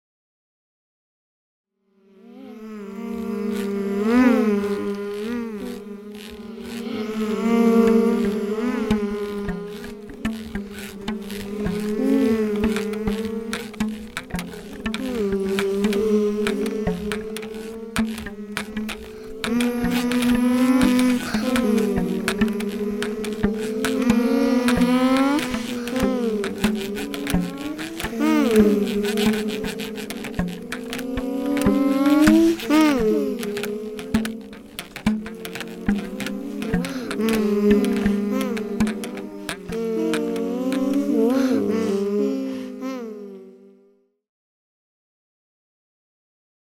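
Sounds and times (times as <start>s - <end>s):
cars: 2.2s - 43.4s.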